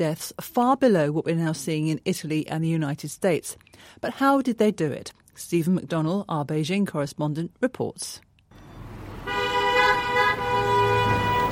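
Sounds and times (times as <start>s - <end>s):
speech: 0.0s - 8.3s
busy street intersection traffic rumbling: 8.5s - 11.5s
car horn honking: 8.6s - 11.5s.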